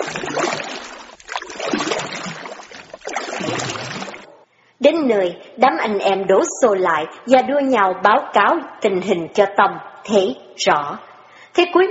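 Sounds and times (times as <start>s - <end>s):
small wooden boat poled hard through floodwater: 0.0s - 4.4s
speech: 4.9s - 11.8s.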